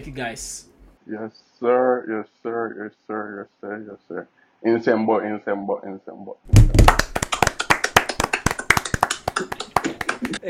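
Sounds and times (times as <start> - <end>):
speech: 0.0 - 7.0, 9.4 - 9.7
hand claps: 6.5 - 10.4.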